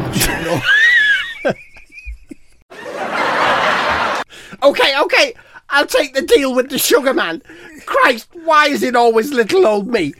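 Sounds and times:
canned laughter: 0.1 - 4.3
speech: 0.4 - 0.8, 1.4 - 1.7, 4.7 - 10.1.

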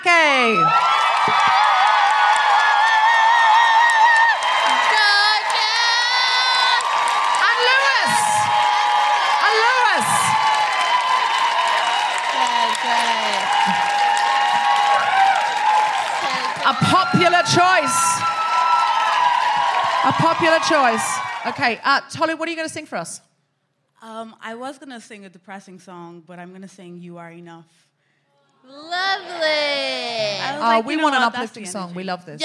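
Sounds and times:
speech: 0.0 - 1.6, 20.1 - 23.3, 24.2 - 27.9, 28.6 - 32.4
crowd applause: 0.4 - 21.8.

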